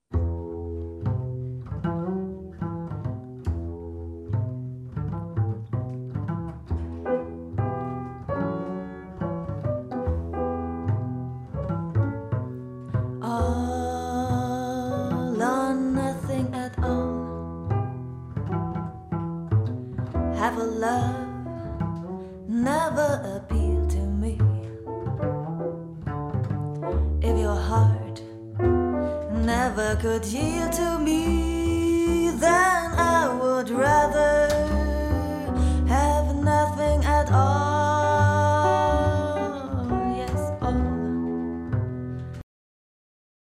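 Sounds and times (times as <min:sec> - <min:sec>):
swing trio playing: 0:00.1 - 0:42.4.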